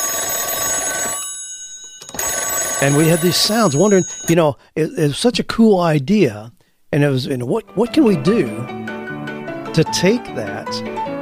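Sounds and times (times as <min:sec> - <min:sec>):
old telephone ringing: 0:00.0 - 0:04.4
speech: 0:02.8 - 0:08.9, 0:09.8 - 0:11.0.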